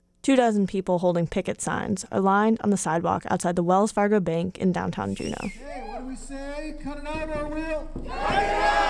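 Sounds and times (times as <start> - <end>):
speech: 0.2 - 8.8
protest crowd chanting call and response: 5.6 - 8.8.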